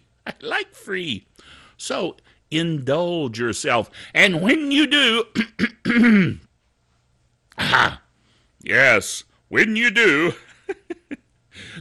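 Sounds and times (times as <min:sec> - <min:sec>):
speech: 0:00.3 - 0:06.4, 0:07.6 - 0:08.0, 0:08.6 - 0:11.7
throat clearing: 0:05.4 - 0:06.5, 0:07.5 - 0:08.0
vocal grunting: 0:07.6 - 0:08.1.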